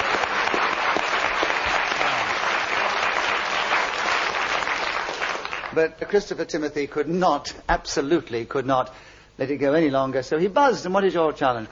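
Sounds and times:
audience applause: 0.0 - 5.8
speech: 5.8 - 11.7.

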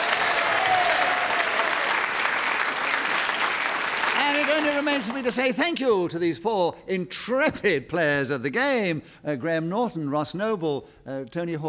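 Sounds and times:
audience applause: 0.0 - 5.6
speech: 4.8 - 11.6.

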